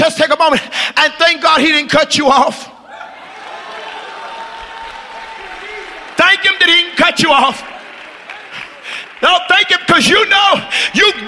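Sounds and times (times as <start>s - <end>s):
speech: 0.0s - 2.7s, 6.2s - 7.7s, 9.2s - 11.2s
audience clapping hands: 3.2s - 11.2s.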